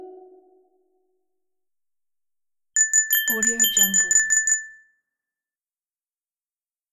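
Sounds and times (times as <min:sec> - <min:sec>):
bells ringing: 0:02.8 - 0:04.7.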